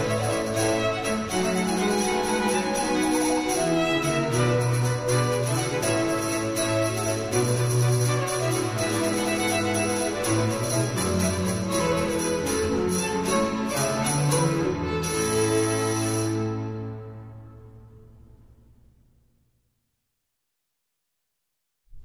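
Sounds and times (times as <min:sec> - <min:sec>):
cello solo: 0:00.0 - 0:16.9.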